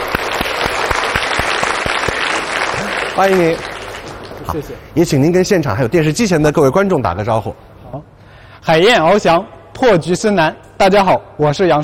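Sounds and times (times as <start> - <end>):
audience applause: 0.0 - 4.8
speech: 3.2 - 3.7, 4.5 - 11.8.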